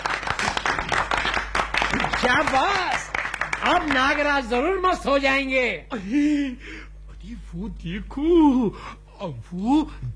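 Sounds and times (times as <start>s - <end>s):
children clapping at a show: 0.0s - 4.3s
speech: 2.2s - 3.0s, 3.6s - 10.1s.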